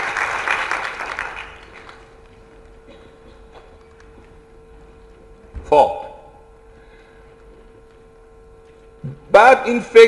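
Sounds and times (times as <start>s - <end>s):
audience applause during a talk on happiness and wealth: 0.0s - 2.2s
speech: 9.4s - 10.0s.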